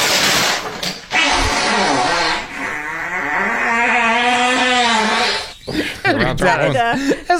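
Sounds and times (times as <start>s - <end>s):
long loud buzzy fart: 1.1s - 5.6s
laughter: 5.7s - 7.3s.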